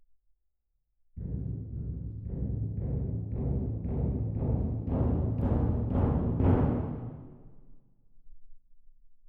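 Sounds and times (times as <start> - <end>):
percussion: 1.2 - 7.4.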